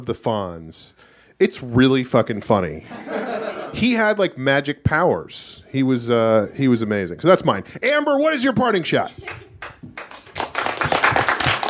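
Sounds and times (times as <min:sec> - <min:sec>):
speech: 0:00.0 - 0:10.0
laughter: 0:02.8 - 0:03.8
small group applauding: 0:09.3 - 0:11.6.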